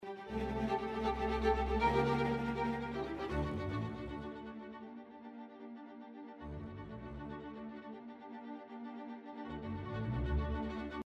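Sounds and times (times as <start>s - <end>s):
quantised strings playing: 0.0s - 11.0s.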